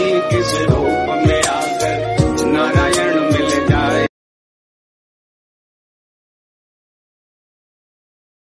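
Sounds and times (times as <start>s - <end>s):
Bhakti devotional music: 0.0s - 4.1s.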